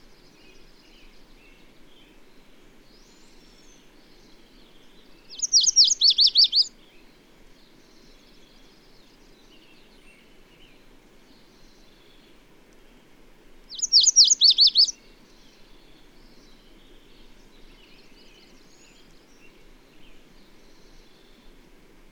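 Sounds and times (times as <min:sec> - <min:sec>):
bird song of rapid high sweeping notes: 0:05.3 - 0:06.7, 0:13.7 - 0:14.9.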